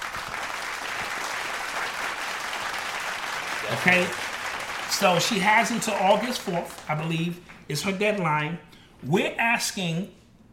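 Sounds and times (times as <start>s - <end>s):
applause: 0.0s - 7.6s
speech: 3.7s - 4.3s, 4.9s - 10.2s.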